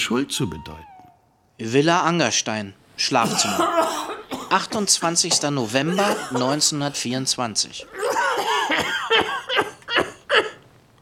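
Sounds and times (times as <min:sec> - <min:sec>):
speech: 0:00.1 - 0:00.9, 0:01.6 - 0:08.2
man coughing: 0:03.2 - 0:07.0, 0:07.8 - 0:10.6.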